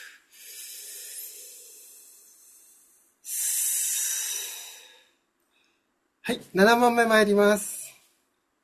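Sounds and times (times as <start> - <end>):
deep breath during an exercise break: 0.0 - 5.9
speech: 6.3 - 7.8.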